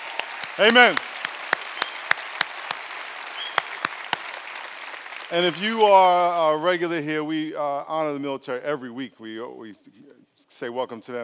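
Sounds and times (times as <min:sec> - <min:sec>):
sharp hand claps: 0:00.0 - 0:05.9
audience applause for veterans: 0:00.0 - 0:06.6
speech: 0:00.6 - 0:01.1, 0:05.3 - 0:11.2.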